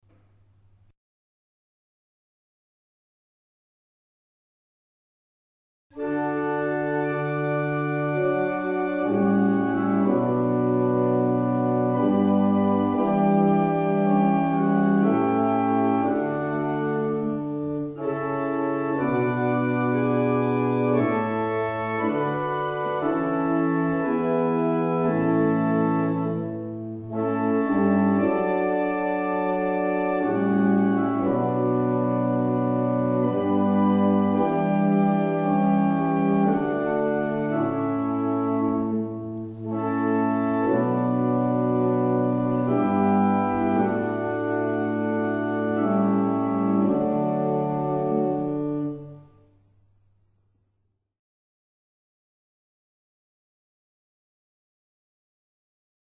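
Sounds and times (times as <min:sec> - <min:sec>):
barrel organs: 0:06.0 - 0:49.2.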